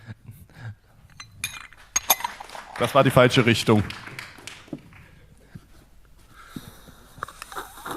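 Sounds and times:
ceramic teacup clinking while drinking: 0:01.1 - 0:02.9
speech: 0:02.8 - 0:04.1.

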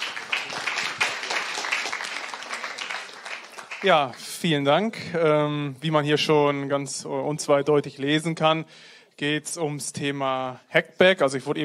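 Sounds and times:
audience applause: 0:00.0 - 0:04.2
speech: 0:03.8 - 0:11.6.

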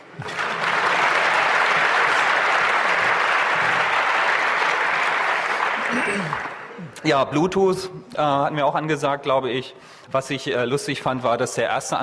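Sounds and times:
audience applause: 0:00.0 - 0:06.9
speech: 0:07.0 - 0:12.0.

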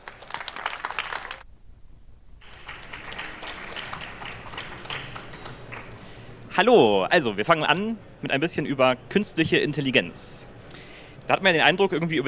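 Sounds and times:
audience applause: 0:00.0 - 0:01.4, 0:02.4 - 0:06.1
speech: 0:06.6 - 0:10.6, 0:11.3 - 0:12.2.

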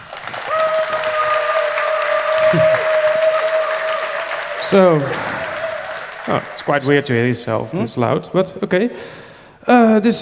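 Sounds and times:
audience applause welcoming speakers to a talk: 0:00.0 - 0:07.7
speech: 0:02.5 - 0:02.7, 0:04.7 - 0:05.3, 0:06.3 - 0:10.2.

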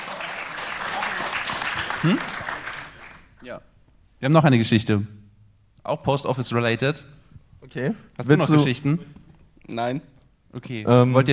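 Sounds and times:
audience applause: 0:00.0 - 0:03.3
speech: 0:02.0 - 0:02.4, 0:03.4 - 0:05.2, 0:05.8 - 0:11.3.

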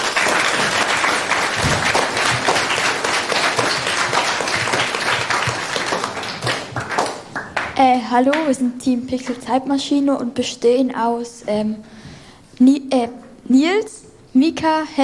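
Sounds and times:
crowd applauding: 0:00.0 - 0:08.5
speech: 0:07.8 - 0:12.0, 0:12.6 - 0:15.0.

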